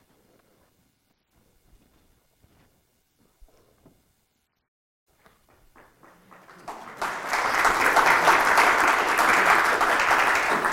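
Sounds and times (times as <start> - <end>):
crowd applauding: 5.4 - 10.7.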